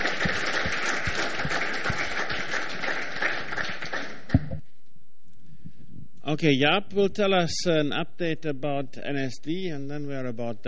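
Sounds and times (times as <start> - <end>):
audience applause: 0.0 - 4.4
speech: 6.3 - 10.6.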